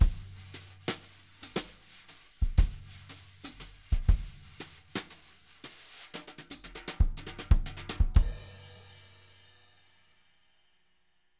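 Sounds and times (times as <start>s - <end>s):
jazz brush drum loop: 0.0s - 8.8s.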